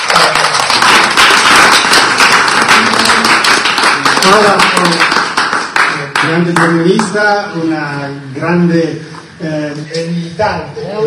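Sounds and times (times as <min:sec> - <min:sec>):
audience applause: 0:00.0 - 0:06.8
speech: 0:04.3 - 0:05.1, 0:06.4 - 0:11.0.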